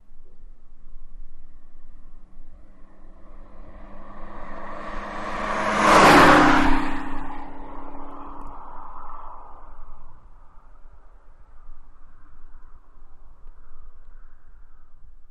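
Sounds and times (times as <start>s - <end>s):
Mustang passing fast on a highway: 1.5s - 13.2s.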